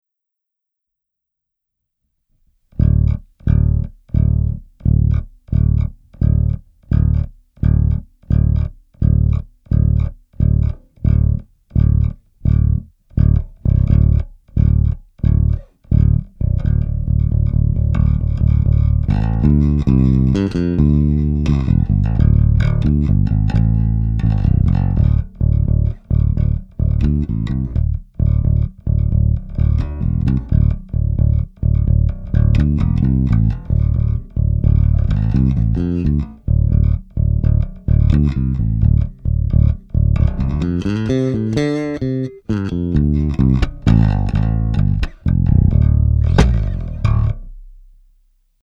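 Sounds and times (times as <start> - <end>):
bass: 2.5 - 48.6.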